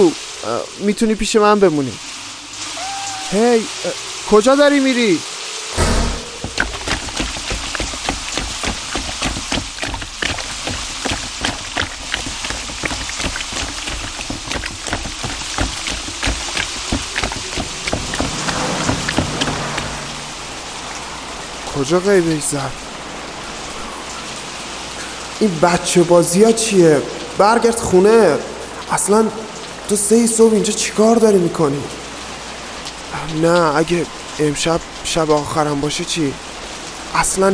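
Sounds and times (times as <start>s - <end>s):
speech: 0.0s - 2.2s, 3.3s - 5.3s, 21.8s - 22.8s, 25.4s - 32.1s, 33.3s - 36.5s, 37.1s - 37.5s
rain falling: 0.0s - 37.5s.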